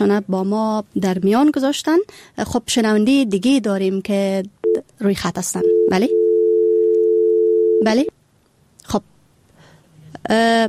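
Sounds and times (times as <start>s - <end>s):
speech: 0.0s - 6.2s, 7.8s - 8.2s, 8.9s - 9.1s, 10.2s - 10.6s
dial tone after a dropped phone call: 5.6s - 7.9s.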